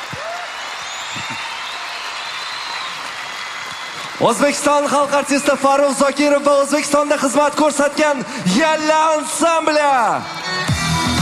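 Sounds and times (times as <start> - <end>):
audience applause at a folk ensemble's concert: 0.0 - 6.1
speech: 1.2 - 1.5, 4.2 - 10.6.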